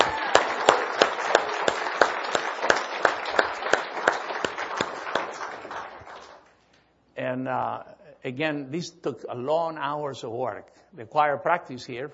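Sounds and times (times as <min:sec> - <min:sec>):
crowd applause for choir: 0:00.0 - 0:06.5
speech: 0:07.4 - 0:12.1.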